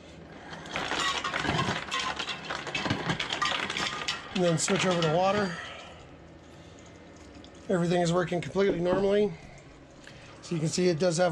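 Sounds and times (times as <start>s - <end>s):
refrigerator dispenser whirring: 0.0s - 11.2s
ice cubes clattering out of a refrigerator dispenser: 0.5s - 5.9s
speech: 4.4s - 5.7s, 7.7s - 9.4s, 10.5s - 11.2s.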